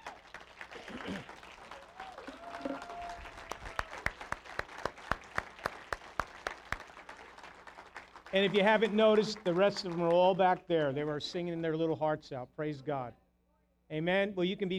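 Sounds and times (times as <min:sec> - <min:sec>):
audience clapping in unison: 0:00.0 - 0:11.2
speech: 0:08.4 - 0:13.2, 0:13.9 - 0:14.7.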